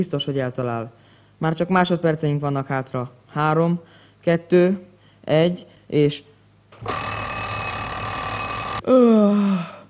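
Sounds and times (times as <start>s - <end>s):
speech: 0.0s - 7.3s, 8.8s - 9.8s
alarm clock ringing: 6.8s - 8.8s
person vocalizing with falling pitch: 8.8s - 9.8s.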